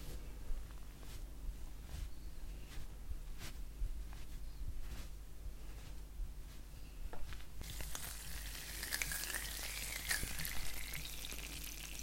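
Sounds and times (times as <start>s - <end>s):
soft rubbing and tapping of a face massage: 0.0s - 8.0s
brighter hissy crackling: 7.6s - 12.0s.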